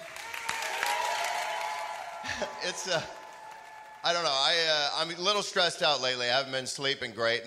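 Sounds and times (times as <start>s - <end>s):
audience clapping: 0.0s - 4.6s
speech: 2.4s - 3.2s, 4.0s - 7.4s.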